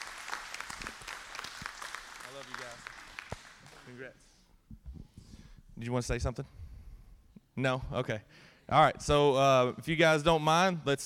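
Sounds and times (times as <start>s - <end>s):
audience applause: 0.0s - 3.9s
speech: 2.4s - 3.0s, 3.9s - 4.8s, 5.8s - 6.6s, 7.6s - 11.0s.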